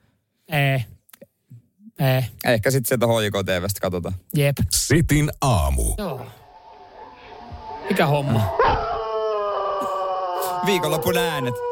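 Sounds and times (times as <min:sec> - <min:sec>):
speech: 0:00.5 - 0:00.9, 0:02.0 - 0:06.4, 0:07.9 - 0:08.9, 0:10.6 - 0:11.7
dog howling in heat: 0:06.4 - 0:11.7.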